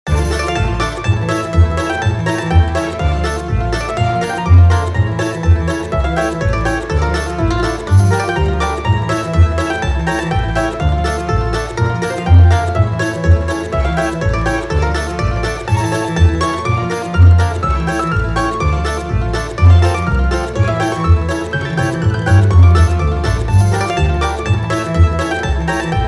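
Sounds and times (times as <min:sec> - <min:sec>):
Russian mandolin and balalaika: 0:00.0 - 0:26.0.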